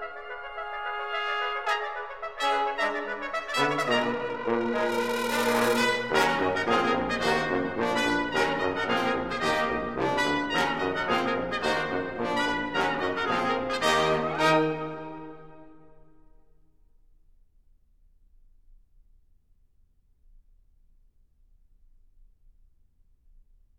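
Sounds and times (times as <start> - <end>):
brass ensemble playing: 0.0 - 16.0.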